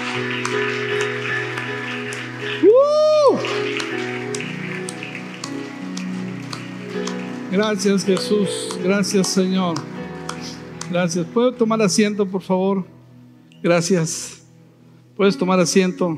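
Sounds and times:
audience applause: 0.0s - 8.4s
speech: 0.2s - 0.6s, 7.6s - 10.0s, 10.9s - 13.0s, 13.6s - 14.4s, 15.2s - 16.1s.

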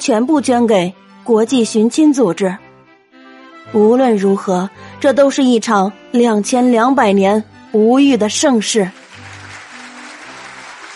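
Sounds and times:
speech: 0.0s - 2.6s, 3.7s - 9.0s
applause at a charity gala: 8.9s - 10.9s.

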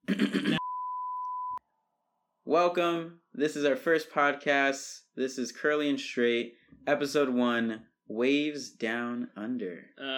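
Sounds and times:
censor bleep: 0.6s - 1.6s
speech: 2.5s - 10.1s.

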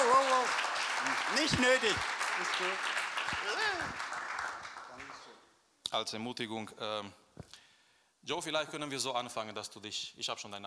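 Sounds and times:
crowd clapping: 0.0s - 5.3s
speech: 1.3s - 4.2s, 5.9s - 7.6s, 8.2s - 10.6s.

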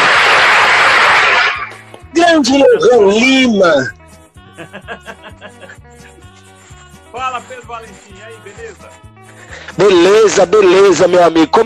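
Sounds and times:
round of applause: 0.0s - 1.8s
speech: 2.4s - 4.0s, 4.6s - 6.2s, 7.1s - 11.6s
laughter: 4.5s - 6.4s.

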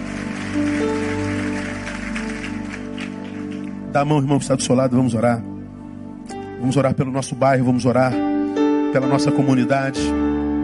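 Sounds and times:
audience applauding: 0.0s - 4.0s
speech: 3.9s - 5.5s, 6.6s - 8.3s, 8.9s - 10.3s.

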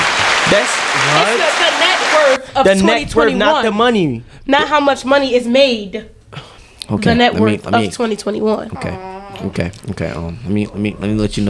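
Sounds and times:
round of applause: 0.0s - 2.4s
speech: 0.5s - 11.4s.

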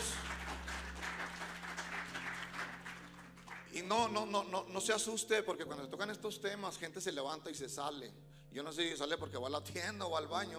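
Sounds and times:
audience applause: 0.0s - 3.8s
speech: 3.8s - 10.5s.

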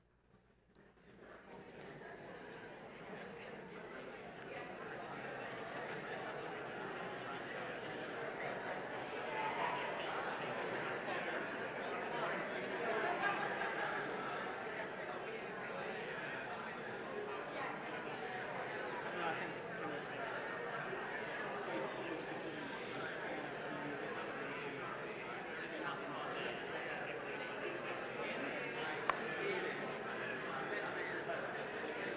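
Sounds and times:
audience members chatting in small groups: 0.8s - 32.1s.

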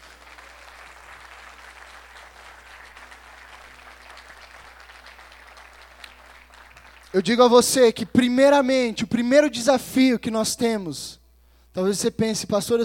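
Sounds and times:
audience applauding: 0.0s - 7.3s
speech: 7.2s - 12.8s.

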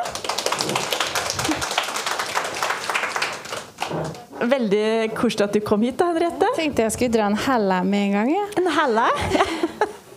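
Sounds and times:
audience clapping: 0.0s - 4.3s
speech: 4.4s - 9.6s
laughter: 9.1s - 10.1s.

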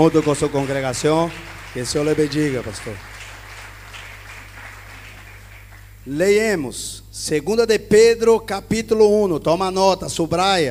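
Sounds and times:
speech: 0.0s - 3.1s, 6.0s - 10.6s
audience applauding: 0.0s - 6.0s.

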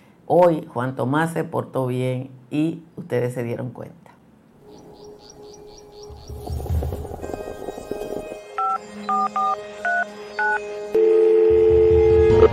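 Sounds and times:
speech: 0.3s - 4.0s
telephone keypad dialing tones: 8.6s - 12.5s.

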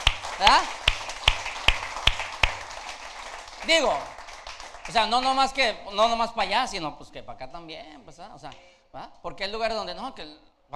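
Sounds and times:
audience rhythmic clapping: 0.0s - 5.7s
speech: 0.4s - 0.8s, 3.6s - 4.2s, 4.8s - 10.7s.

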